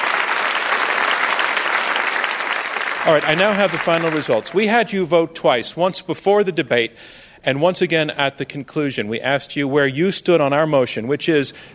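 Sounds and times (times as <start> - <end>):
audience applause: 0.0 - 4.8
speech: 3.0 - 11.7.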